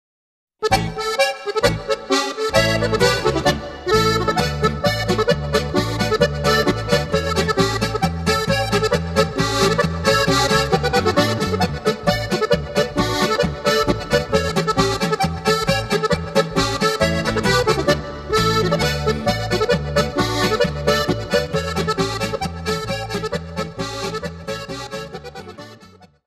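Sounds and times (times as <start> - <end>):
harmonica polka: 0.6 - 26.2.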